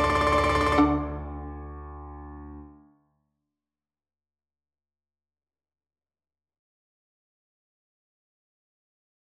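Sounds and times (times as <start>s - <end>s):
boogie violin duet: 0.0s - 1.4s.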